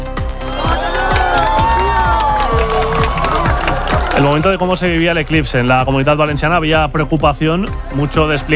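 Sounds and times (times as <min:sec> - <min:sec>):
large crowd clapping in rhythm: 0:00.2 - 0:06.1
crowd cheering, whooping and whistling: 0:00.3 - 0:05.1
speech: 0:04.2 - 0:08.5.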